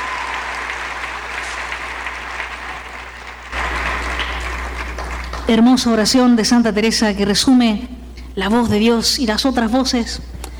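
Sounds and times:
audience applause: 0:00.0 - 0:05.7
speech: 0:05.5 - 0:10.3.

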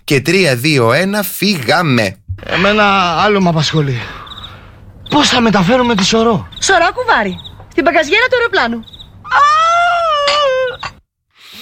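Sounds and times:
speech: 0:00.1 - 0:04.2, 0:05.1 - 0:09.7
person wailing and sobbing: 0:09.3 - 0:10.9.

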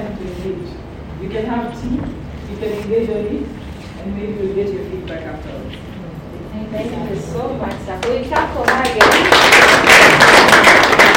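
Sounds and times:
speech: 0:01.2 - 0:05.9, 0:06.6 - 0:10.4
audience clapping: 0:07.7 - 0:11.1.

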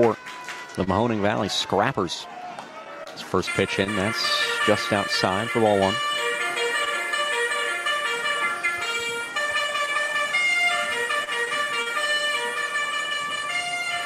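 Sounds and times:
speech: 0:00.8 - 0:02.4, 0:03.2 - 0:06.1
car horn or car alarm sound effect: 0:03.3 - 0:14.0.

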